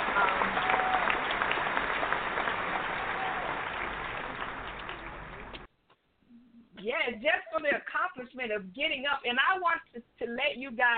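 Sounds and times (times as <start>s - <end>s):
audience applauding: 0.0s - 5.7s
faint whistle or cheer: 0.1s - 1.3s, 2.8s - 3.9s
speech: 7.0s - 10.9s.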